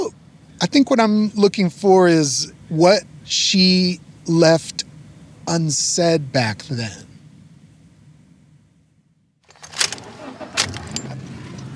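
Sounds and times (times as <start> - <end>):
car engine rumble: 0.0 - 11.7
speech: 0.6 - 4.8, 5.5 - 7.1
clunks and rattles: 9.4 - 11.7.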